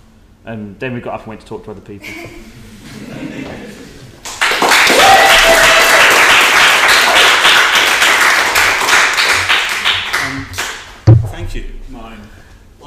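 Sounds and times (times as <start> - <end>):
speech: 0.4 - 3.6
audience applause after a poem: 4.2 - 10.7.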